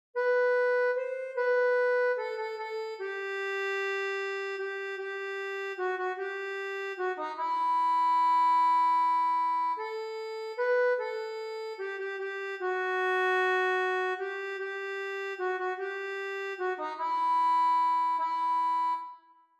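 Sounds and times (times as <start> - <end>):
accordion: 0.2 - 19.5.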